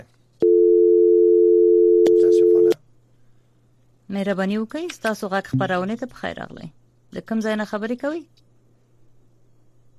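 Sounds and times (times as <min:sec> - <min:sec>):
telephone dial tone as a radio host calls a listener: 0:00.4 - 0:02.7
speech: 0:04.1 - 0:08.4.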